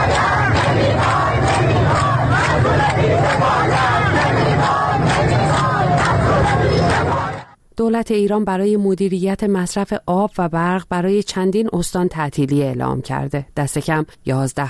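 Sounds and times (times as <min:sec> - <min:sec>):
crowd of protesters chanting in Sabzevar: 0:00.0 - 0:07.6
speech: 0:07.8 - 0:14.6.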